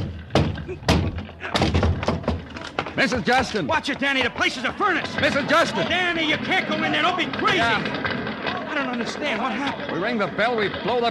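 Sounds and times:
door being kicked in: 0:00.0 - 0:03.1
speech: 0:03.0 - 0:08.1, 0:08.8 - 0:11.0.

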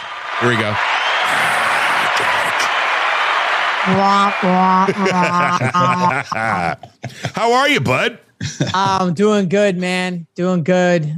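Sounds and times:
applause sound effect: 0:00.0 - 0:06.6
speech: 0:00.4 - 0:01.0, 0:03.8 - 0:11.1
laughter: 0:03.9 - 0:09.0.

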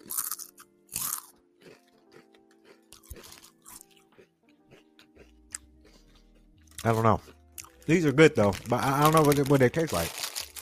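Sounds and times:
herb-flavoured Lay's potato chips being chewed: 0:00.0 - 0:06.0, 0:06.6 - 0:10.5
speech: 0:06.8 - 0:10.2.

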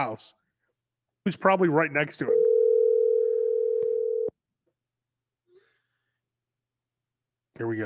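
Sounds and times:
speech: 0:00.0 - 0:00.4, 0:01.2 - 0:02.5, 0:07.6 - 0:07.8
telephone call ringing tone: 0:02.3 - 0:04.3.

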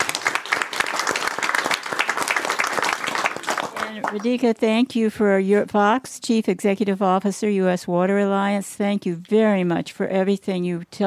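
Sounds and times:
audience applause: 0:00.0 - 0:04.5
speech: 0:04.1 - 0:11.0.

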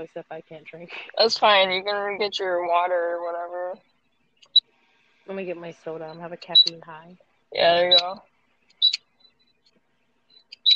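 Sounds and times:
speech: 0:00.0 - 0:03.9, 0:05.3 - 0:08.3
shrill electronic beeps: 0:07.6 - 0:08.2, 0:08.8 - 0:09.5, 0:10.3 - 0:10.7
faint thin chirps: 0:07.8 - 0:09.4, 0:10.3 - 0:10.7.

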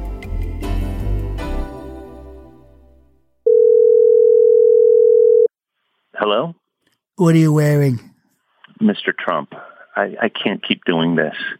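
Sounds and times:
telephone dial tone before a call: 0:03.5 - 0:05.5
speech: 0:06.3 - 0:06.6, 0:07.2 - 0:08.1, 0:08.8 - 0:11.5.

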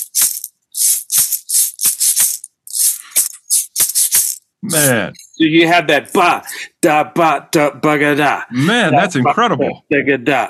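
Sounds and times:
ride cymbal swing beat: 0:00.0 - 0:05.0
speech: 0:04.7 - 0:10.4.

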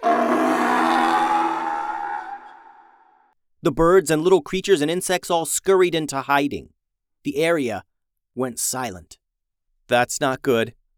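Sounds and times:
monster roar, pterodactyl scream with lion growl: 0:00.0 - 0:03.2
speech: 0:03.6 - 0:09.2, 0:09.9 - 0:10.8.

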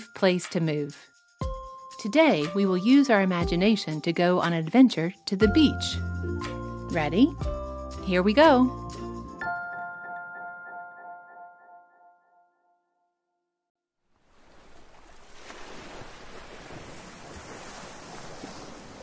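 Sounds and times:
speech: 0:00.2 - 0:01.1, 0:02.0 - 0:06.1, 0:06.9 - 0:08.8
ocean waves at a beach: 0:14.1 - 0:19.0.

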